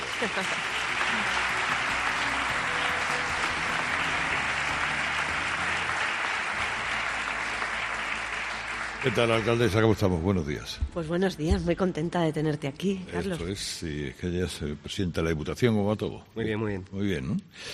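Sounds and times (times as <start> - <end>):
audience applause: 0.0 - 10.4
speech: 0.2 - 1.5, 9.0 - 17.7.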